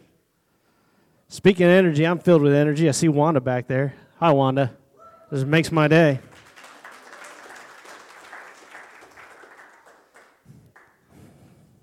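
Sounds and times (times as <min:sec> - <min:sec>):
speech: 0:01.3 - 0:06.3
crowd applauding in a church room: 0:06.1 - 0:11.1.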